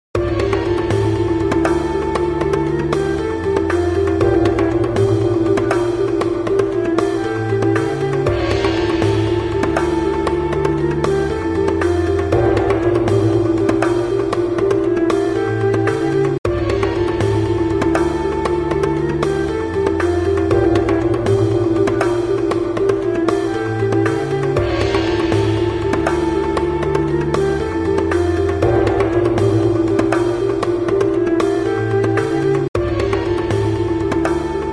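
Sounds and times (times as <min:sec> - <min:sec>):
battle music: 0:00.2 - 0:34.7.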